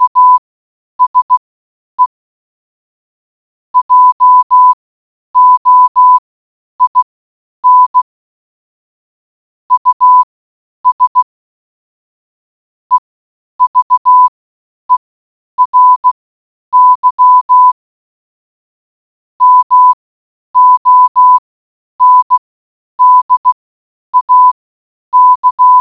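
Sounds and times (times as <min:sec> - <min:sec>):
morse code beeps: 0:00.0 - 0:00.4, 0:01.0 - 0:01.4, 0:03.8 - 0:04.8, 0:05.4 - 0:06.2, 0:06.8 - 0:08.1, 0:09.7 - 0:10.3, 0:10.9 - 0:11.3, 0:13.6 - 0:14.3, 0:15.6 - 0:17.8, 0:19.4 - 0:20.0, 0:20.6 - 0:21.4, 0:22.0 - 0:22.4, 0:23.0 - 0:23.6, 0:24.2 - 0:24.6, 0:25.2 - 0:25.7.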